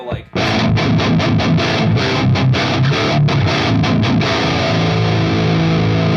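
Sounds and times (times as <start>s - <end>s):
heavily distorted electric guitar with a gain pedal engaged: 0.2s - 6.1s.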